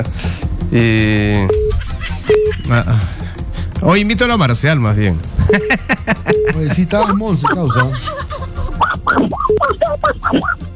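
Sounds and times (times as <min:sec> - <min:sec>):
speech: 0:00.0 - 0:01.7, 0:02.3 - 0:03.2, 0:03.8 - 0:08.4, 0:09.1 - 0:10.7
laughter: 0:01.7 - 0:03.1, 0:05.4 - 0:10.6
voice imitating a duck quack: 0:08.8 - 0:10.7.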